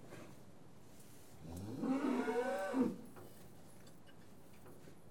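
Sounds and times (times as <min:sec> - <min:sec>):
farm cattle mooing while being tested: 0:01.6 - 0:03.0.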